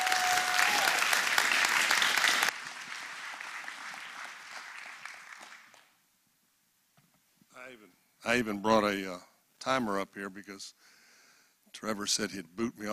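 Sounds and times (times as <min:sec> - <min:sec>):
audience applause welcoming speaker: 0:00.0 - 0:06.0
speech: 0:07.8 - 0:10.9, 0:11.8 - 0:12.9.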